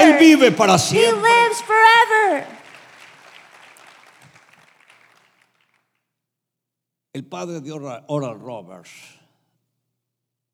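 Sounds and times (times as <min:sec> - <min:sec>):
audience clapping at a bilingual sermon: 0:00.0 - 0:06.0
speech: 0:00.2 - 0:02.6, 0:07.2 - 0:09.2.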